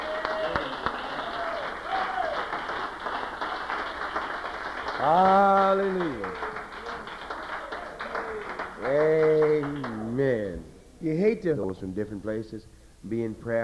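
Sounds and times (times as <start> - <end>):
audience applause: 0.0 - 10.2
speech: 5.0 - 6.5, 8.8 - 13.6.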